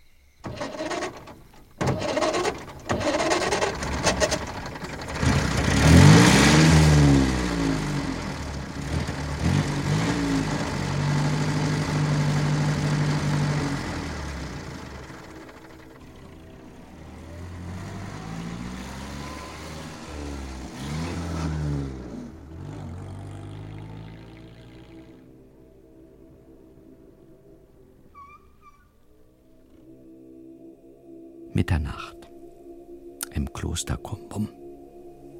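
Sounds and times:
car engine starting and driving off toward a monastery: 0:00.4 - 0:26.9
speech: 0:31.7 - 0:32.2, 0:33.4 - 0:34.6.

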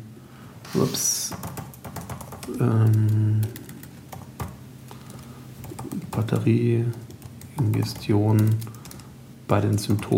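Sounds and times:
speech: 0:00.7 - 0:01.6, 0:02.5 - 0:03.3, 0:06.2 - 0:08.8, 0:09.5 - 0:10.1
laptop keyboard typing: 0:01.3 - 0:10.1.

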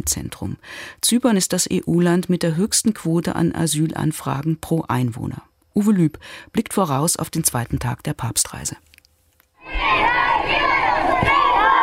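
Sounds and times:
speech: 0:00.0 - 0:08.9
children shouting and cheering welcoming the Pope at Larnaca airport in Cyprus: 0:09.6 - 0:11.8.

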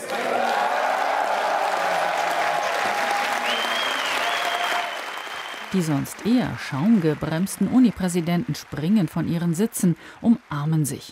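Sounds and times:
excited cheers and whoops: 0:00.0 - 0:05.8
applause: 0:00.0 - 0:11.0
speech: 0:05.7 - 0:11.0.

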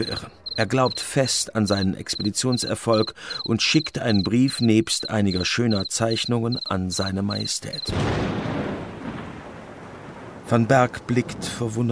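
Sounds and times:
speech: 0:00.0 - 0:08.4, 0:10.5 - 0:11.9
thunder: 0:07.8 - 0:11.9.

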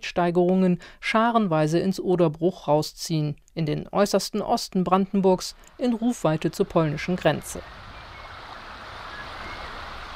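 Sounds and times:
speech: 0:00.2 - 0:07.8
the Oder river flowing gently in Brandenburg's Oderbruch: 0:05.3 - 0:10.1.

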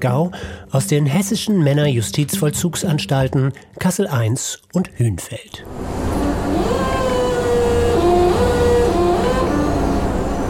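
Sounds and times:
speech: 0:00.0 - 0:06.9
electric forklift whirring across industrial yard: 0:05.6 - 0:10.4.

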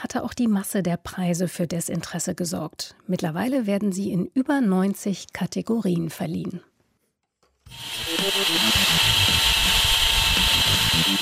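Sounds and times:
speech: 0:00.0 - 0:06.7, 0:07.7 - 0:09.2
DIY self-assembled vacuum cleaner running: 0:07.7 - 0:11.1.

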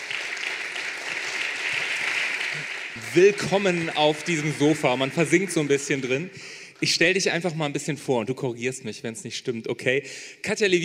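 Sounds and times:
audience applause: 0:00.0 - 0:06.6
speech: 0:02.6 - 0:10.8.

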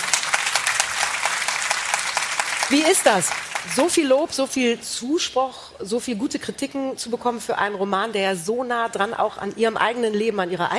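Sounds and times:
audience applause: 0:00.0 - 0:04.0
speech: 0:02.7 - 0:10.7.

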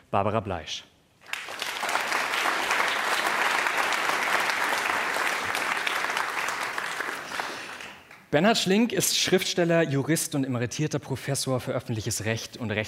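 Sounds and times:
speech: 0:00.1 - 0:00.9, 0:08.3 - 0:12.8
audience applauding a guest at a panel event: 0:01.2 - 0:08.3.

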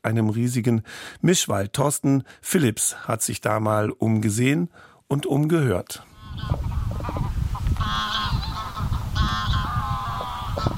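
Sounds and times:
speech: 0:00.0 - 0:07.3
flock of wild geese honking at the lagoon: 0:06.1 - 0:10.7.

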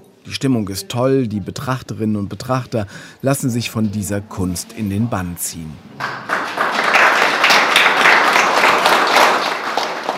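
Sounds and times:
speech: 0:00.3 - 0:06.3
applause after an opening speech: 0:06.0 - 0:10.1.

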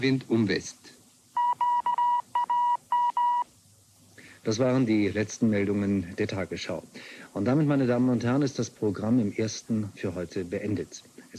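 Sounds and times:
speech: 0:00.0 - 0:01.0, 0:04.4 - 0:11.3
Morse code beeps: 0:01.4 - 0:03.5.

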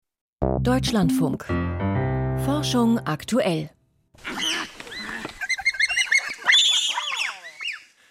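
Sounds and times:
speech: 0:00.4 - 0:01.9, 0:02.5 - 0:04.4
several bonobos squealing and hooting: 0:04.2 - 0:07.9.

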